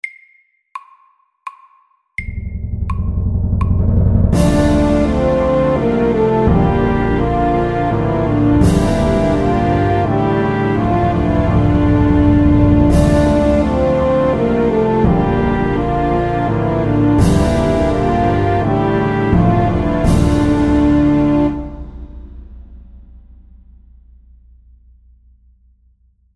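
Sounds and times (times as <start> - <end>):
film music: 2.2 - 22.8.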